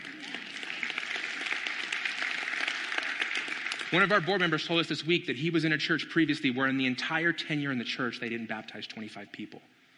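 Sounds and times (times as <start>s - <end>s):
crowd applauding: 0.0s - 4.6s
speech: 3.9s - 9.8s.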